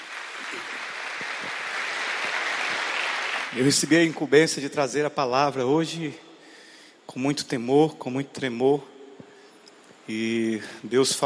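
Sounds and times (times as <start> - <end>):
audience applause: 0.0 - 4.1
speech: 3.6 - 6.3, 7.1 - 8.9, 10.1 - 11.2.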